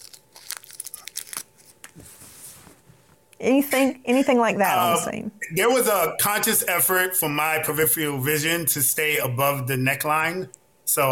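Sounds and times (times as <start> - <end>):
wrapping crinkling and tearing as an object is unwrapped by hand: 0.0 - 2.0
speech: 3.4 - 11.1.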